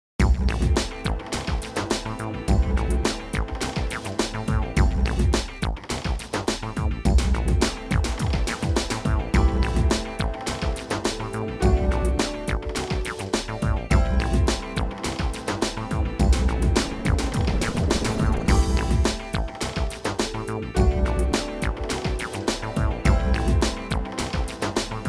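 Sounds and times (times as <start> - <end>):
gothic groove music: 0.2 - 25.0.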